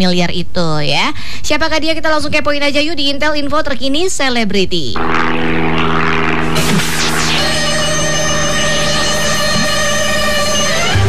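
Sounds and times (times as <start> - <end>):
speech: 0.0 - 6.8
propeller aircraft engine droning before landing: 5.0 - 10.9.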